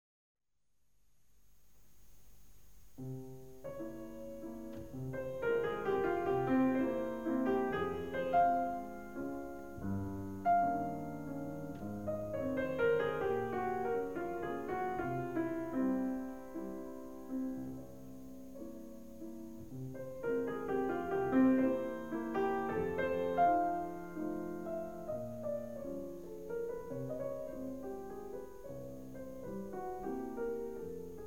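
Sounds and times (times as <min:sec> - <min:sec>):
mazurka in F played by a pianist: 0:03.0 - 0:31.2.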